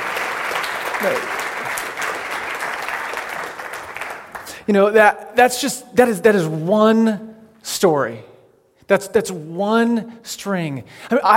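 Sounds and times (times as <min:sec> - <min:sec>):
audience applause: 0:00.0 - 0:04.6
speech: 0:01.0 - 0:01.4, 0:04.7 - 0:08.3, 0:08.9 - 0:11.3.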